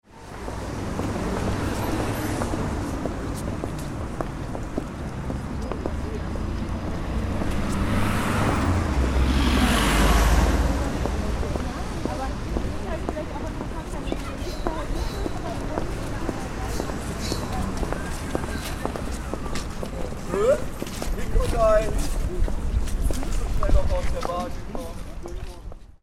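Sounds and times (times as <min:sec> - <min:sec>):
pedestrian zone ambience recorded with windshield: 0:00.0 - 0:26.0.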